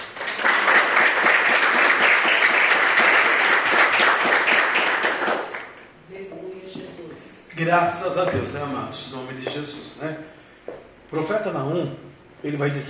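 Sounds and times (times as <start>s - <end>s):
audience applauding: 0.0s - 5.8s
speech: 7.6s - 10.4s, 11.1s - 12.8s.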